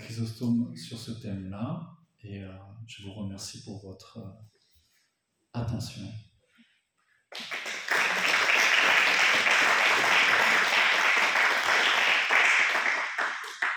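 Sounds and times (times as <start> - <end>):
speech: 0.2 - 4.6, 5.5 - 6.3
audience applause: 7.3 - 13.7.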